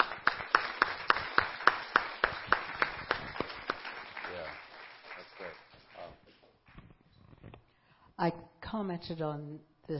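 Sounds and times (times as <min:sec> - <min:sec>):
scattered applause: 0:00.0 - 0:06.2
crowd clapping in rhythm: 0:00.0 - 0:06.4
speech: 0:08.2 - 0:09.9.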